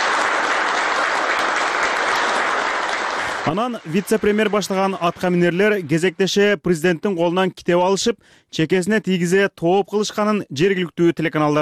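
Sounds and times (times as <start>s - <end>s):
applause at a government security committee meeting: 0.0s - 6.2s
speech: 3.4s - 11.5s.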